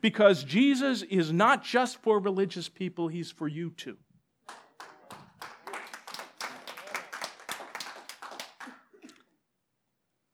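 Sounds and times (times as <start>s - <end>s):
speech: 0.0s - 4.6s
audience applause: 4.5s - 9.2s.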